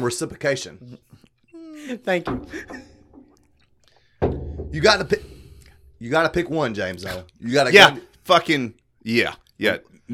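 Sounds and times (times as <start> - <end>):
speech: 0.0 - 1.2, 1.8 - 2.9, 4.6 - 5.4, 6.0 - 10.1
glass slammed down on a table: 4.2 - 6.0.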